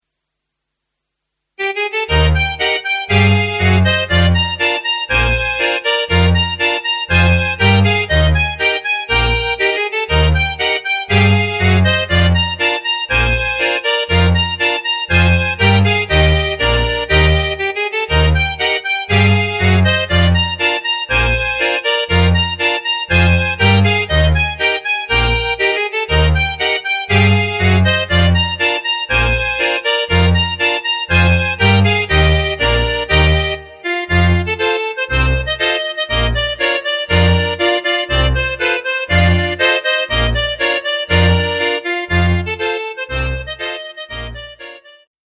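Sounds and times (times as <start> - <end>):
polka music: 1.6 - 45.1.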